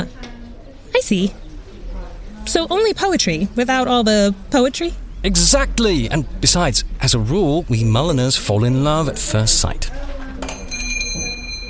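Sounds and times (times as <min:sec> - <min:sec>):
speech: 0:01.0 - 0:01.5, 0:02.4 - 0:10.1
small shop-door bell jingling: 0:10.4 - 0:11.6.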